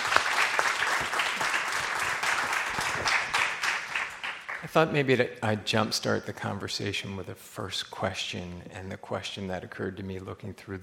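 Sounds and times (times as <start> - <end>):
audience applause: 0.0 - 4.9
speech: 4.7 - 10.8.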